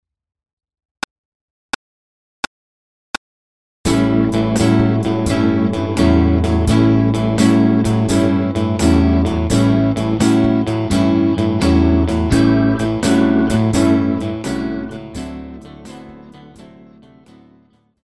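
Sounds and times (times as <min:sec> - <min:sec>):
swing music: 0:03.9 - 0:16.8.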